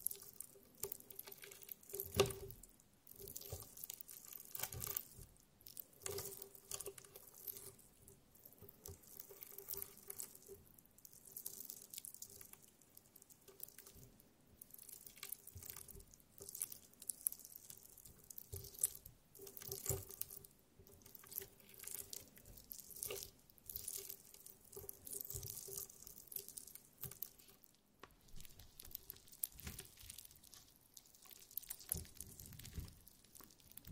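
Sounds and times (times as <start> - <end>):
jelly squishy smacks and slurps: 0.0 - 33.9.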